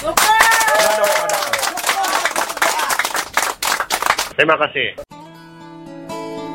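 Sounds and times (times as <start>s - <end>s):
crowd clapping: 0.0s - 4.4s
speech: 4.4s - 5.0s.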